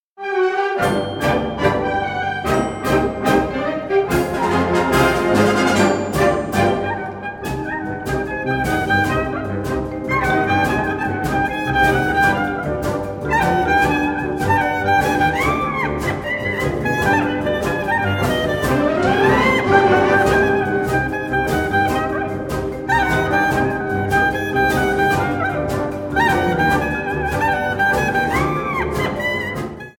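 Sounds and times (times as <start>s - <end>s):
freilach klezmer dance tune: 0.5s - 29.9s.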